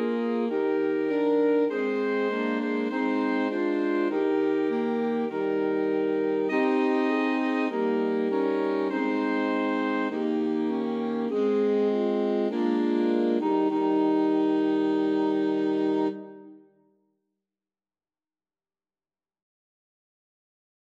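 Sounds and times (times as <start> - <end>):
alto saxophone quartet playing a hymn: 0.0 - 16.6.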